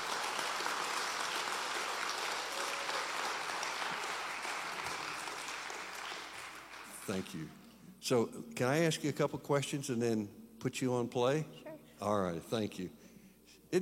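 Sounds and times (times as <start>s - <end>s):
audience applause: 0.0s - 7.4s
speech: 7.1s - 13.1s.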